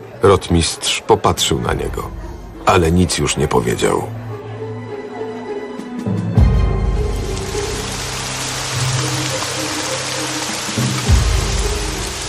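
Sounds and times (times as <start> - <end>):
speech: 0.2 - 4.2
rain falling: 6.8 - 12.2.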